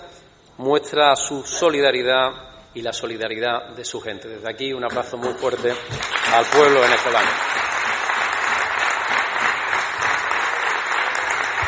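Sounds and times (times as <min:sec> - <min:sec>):
speech: 0:00.6 - 0:07.7
parliament applause from a large crowd in a chamber: 0:05.5 - 0:11.6.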